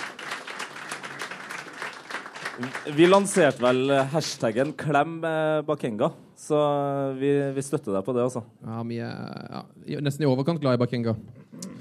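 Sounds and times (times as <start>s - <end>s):
audience applause: 0.0s - 4.8s
speech: 2.6s - 11.6s.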